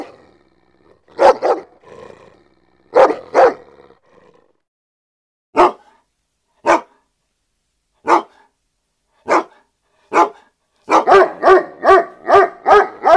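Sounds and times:
German Shepherd barking: 0:01.1 - 0:01.8, 0:02.9 - 0:03.8, 0:05.6 - 0:06.0, 0:06.6 - 0:07.0, 0:08.0 - 0:08.5, 0:09.2 - 0:13.1.

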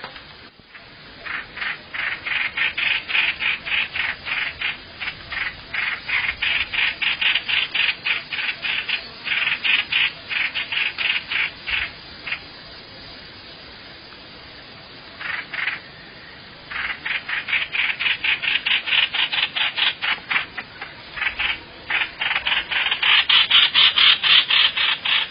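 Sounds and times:
bird rasping calls: 0:00.8 - 0:12.5, 0:15.2 - 0:15.9, 0:16.7 - 0:25.3.

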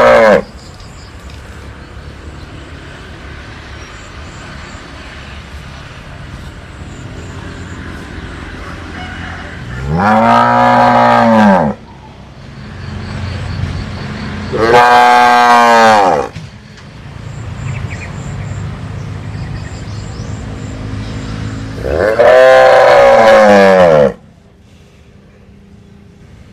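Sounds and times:
cow mooing: 0:00.0 - 0:00.5, 0:09.7 - 0:11.8, 0:14.5 - 0:16.3, 0:21.8 - 0:24.2.

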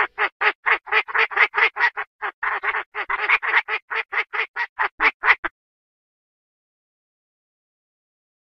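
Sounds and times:
Chinese francolin rasping clucking notes: 0:00.0 - 0:05.5.

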